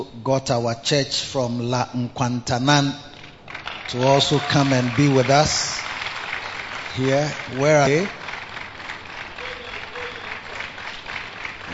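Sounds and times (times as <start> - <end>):
speech: 0.0 - 3.1, 3.9 - 5.8, 7.0 - 8.2
audience clapping in welcome: 3.2 - 11.7.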